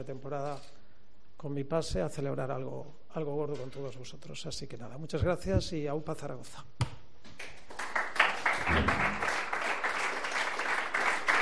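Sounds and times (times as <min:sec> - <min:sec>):
speech: 0:00.0 - 0:00.8, 0:01.4 - 0:06.9
audience applause: 0:07.7 - 0:11.4.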